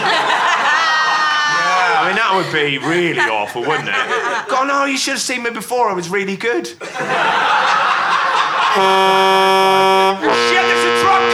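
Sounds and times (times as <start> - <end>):
laughter: 0.0 - 5.1, 6.7 - 11.3
speech: 2.3 - 7.6, 8.8 - 10.4
truck horn honking: 8.7 - 11.3.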